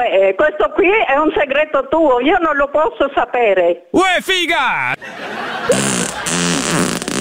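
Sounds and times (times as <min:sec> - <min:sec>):
speech: 0:00.0 - 0:07.0
laughter: 0:05.0 - 0:06.4
loud sustained fart: 0:05.6 - 0:07.1.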